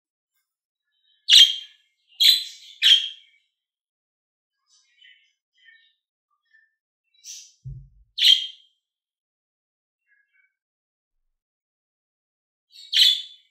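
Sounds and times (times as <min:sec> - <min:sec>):
lovebird chirps: 0:01.3 - 0:03.3, 0:07.2 - 0:08.6
low thump: 0:07.6 - 0:08.1.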